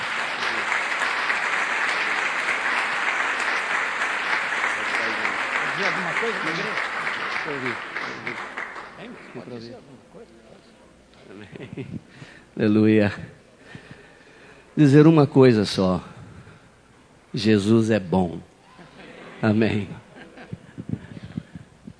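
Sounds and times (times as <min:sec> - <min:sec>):
audience applause: 0:00.0 - 0:09.8
speech: 0:05.8 - 0:10.4, 0:11.3 - 0:13.4, 0:14.8 - 0:16.1, 0:17.3 - 0:18.5, 0:19.4 - 0:20.0
laughter: 0:11.2 - 0:12.1, 0:18.7 - 0:21.2.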